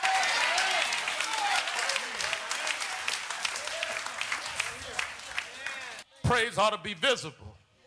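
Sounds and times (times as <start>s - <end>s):
audience clapping hands: 0.0s - 6.0s
speech: 6.3s - 7.5s.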